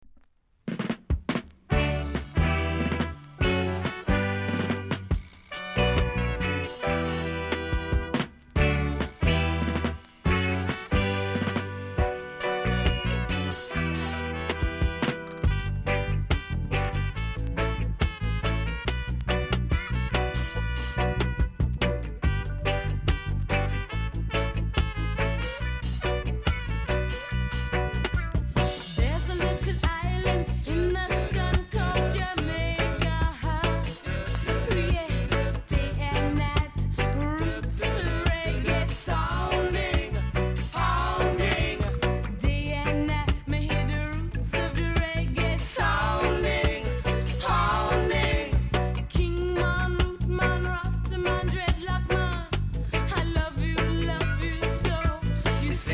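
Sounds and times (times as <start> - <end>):
pounding reggae music: 0.7 - 55.9.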